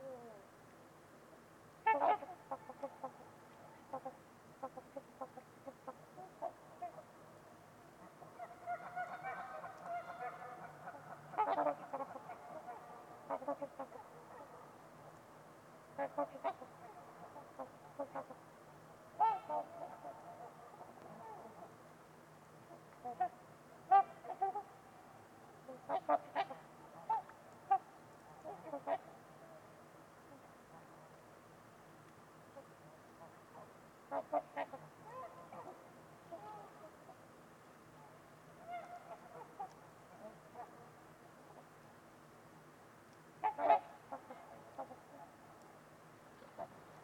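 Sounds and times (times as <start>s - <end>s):
quiet hiss: 0.0s - 47.0s
trumpeter swan honking: 1.8s - 7.1s, 8.0s - 14.8s, 16.0s - 18.4s, 19.2s - 21.8s, 22.7s - 24.9s, 25.6s - 29.6s, 32.6s - 37.0s, 38.0s - 41.6s, 43.4s - 45.4s.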